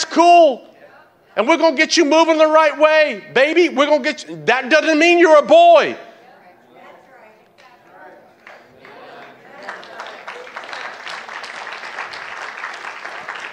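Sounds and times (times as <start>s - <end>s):
speech: 0.2s - 0.7s, 1.4s - 6.0s
audience clapping: 8.4s - 13.5s.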